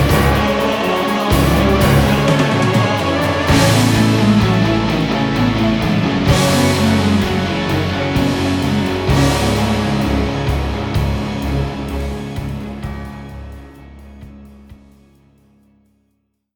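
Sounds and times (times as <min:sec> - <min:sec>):
high-energy action music loop: 0:00.0 - 0:13.0.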